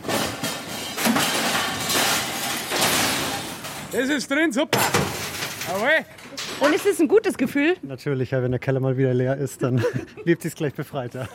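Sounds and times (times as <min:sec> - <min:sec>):
metal scrap thrown into container: 0:00.0 - 0:07.0
speech: 0:04.0 - 0:05.0, 0:05.7 - 0:11.3
laughter: 0:09.6 - 0:10.4, 0:11.1 - 0:11.3.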